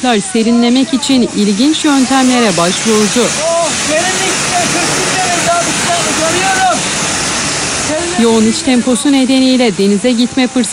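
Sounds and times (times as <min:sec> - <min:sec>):
speech: 0:00.0 - 0:04.9, 0:08.2 - 0:10.7
pressurized water spray at a car wash: 0:01.0 - 0:09.0.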